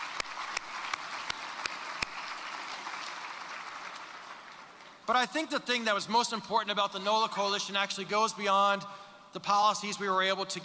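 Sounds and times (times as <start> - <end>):
audience applause: 0.0 - 5.0
speech: 5.1 - 10.6.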